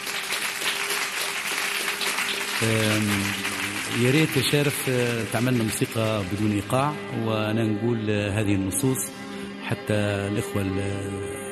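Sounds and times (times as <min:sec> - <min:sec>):
audience applause: 0:00.0 - 0:06.6
speech: 0:02.6 - 0:11.5.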